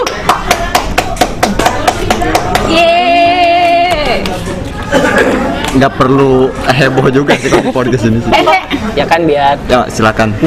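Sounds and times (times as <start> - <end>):
clapping: 0.0 - 2.7
babble of chatter: 0.0 - 10.4
speech: 5.2 - 10.4
laughter: 7.1 - 9.1.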